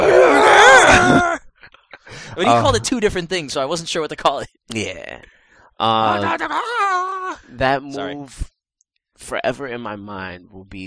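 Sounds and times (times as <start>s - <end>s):
person imitating a video game character's yell: 0.0s - 1.4s, 2.4s - 2.8s, 5.9s - 7.4s
speech: 2.4s - 8.5s, 9.2s - 10.8s.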